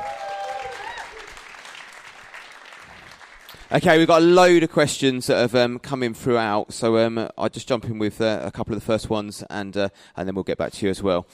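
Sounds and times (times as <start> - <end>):
audience applause: 0.0 - 3.8
speech: 3.7 - 11.3.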